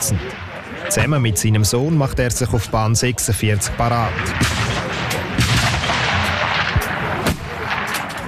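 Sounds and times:
speech: 0.1 - 4.8
rifle shots at 300-metre shooting range in Chur: 4.1 - 8.2.

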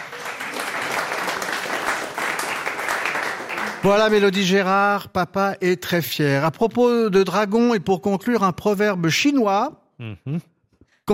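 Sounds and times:
audience applause: 0.0 - 4.4
speech: 3.8 - 10.5.

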